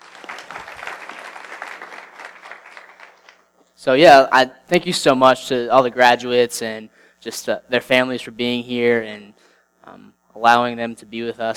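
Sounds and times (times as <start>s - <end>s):
audience applause for graduates at a ceremony: 0.0s - 3.5s
speech: 3.8s - 11.5s.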